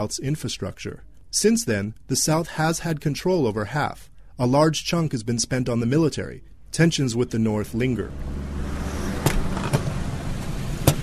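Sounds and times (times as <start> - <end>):
speech: 0.0 - 8.6
road traffic rumble on a main newly paved road beside a gas station in Juba, South Sudan: 5.9 - 11.0.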